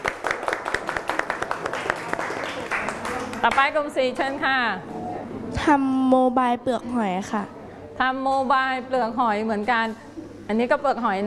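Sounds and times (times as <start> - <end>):
group clapping hands: 0.0 - 3.8
speech: 3.4 - 4.9, 5.5 - 11.2.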